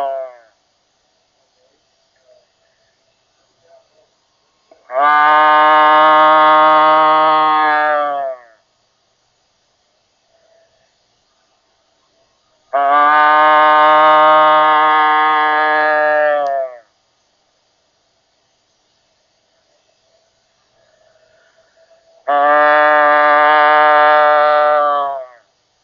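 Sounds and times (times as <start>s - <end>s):
doe bleating: 4.9s - 8.5s, 12.7s - 16.8s, 22.3s - 25.4s.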